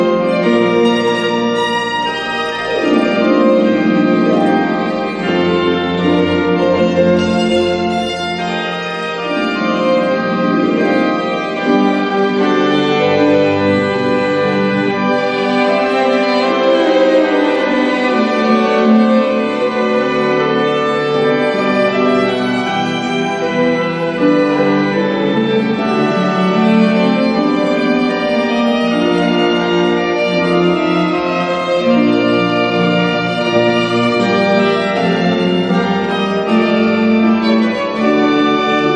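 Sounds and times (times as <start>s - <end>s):
cello: 0.0s - 38.9s
harp: 0.0s - 38.9s
organ: 0.0s - 38.9s
violin: 0.0s - 38.9s.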